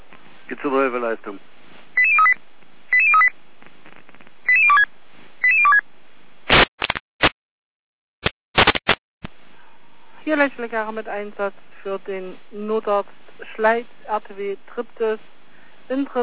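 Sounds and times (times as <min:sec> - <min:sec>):
speech: 0:00.5 - 0:01.5, 0:10.3 - 0:16.2
fire brigade alerting tones: 0:02.0 - 0:03.3, 0:04.5 - 0:05.8
harsh crackling bursts of radio static: 0:06.5 - 0:07.3, 0:08.2 - 0:09.0.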